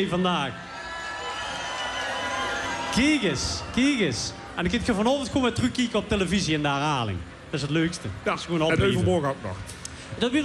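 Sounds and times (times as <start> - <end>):
speech: 0.0 - 0.7, 2.9 - 10.4
audience applauding and cheering: 0.6 - 4.7.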